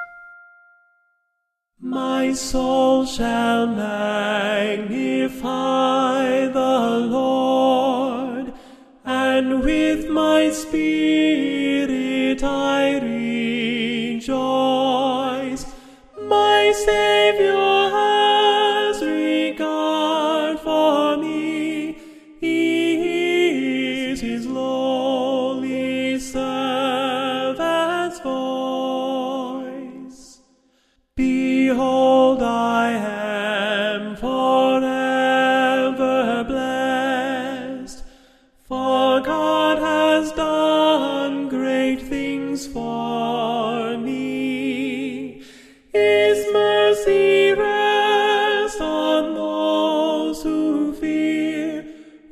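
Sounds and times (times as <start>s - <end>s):
alto voice singing: 1.8s - 30.4s, 31.2s - 38.1s, 38.7s - 52.3s.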